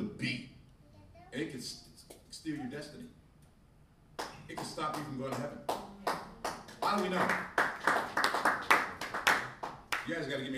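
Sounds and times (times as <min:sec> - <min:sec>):
half-hearted audience clapping: 0:04.2 - 0:10.3
speech: 0:04.8 - 0:05.7, 0:06.9 - 0:07.5, 0:10.1 - 0:10.5.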